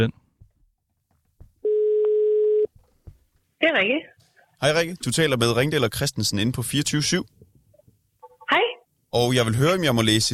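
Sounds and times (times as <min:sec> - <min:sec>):
faint clicks and soft bumps: 0:00.3 - 0:01.6, 0:02.7 - 0:03.5
telephone ringing tone: 0:01.6 - 0:02.7
speech: 0:03.6 - 0:07.4, 0:08.5 - 0:10.3.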